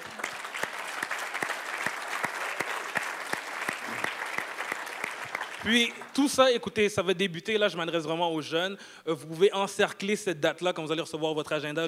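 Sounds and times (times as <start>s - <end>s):
audience applause: 0.0s - 6.2s
speech: 5.6s - 11.8s.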